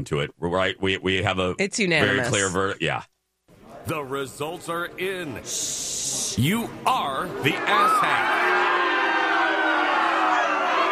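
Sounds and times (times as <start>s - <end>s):
speech: 0.0s - 3.2s, 3.8s - 8.9s
audience booing: 7.4s - 10.9s.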